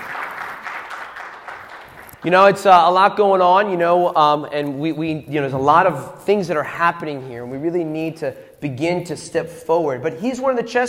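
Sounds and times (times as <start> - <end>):
crowd applause: 0.0 - 2.5
speech: 2.2 - 10.8.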